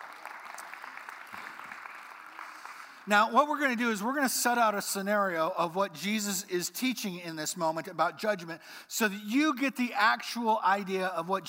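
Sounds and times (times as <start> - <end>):
crowd applause: 0.0 - 3.1
speech: 3.1 - 11.4.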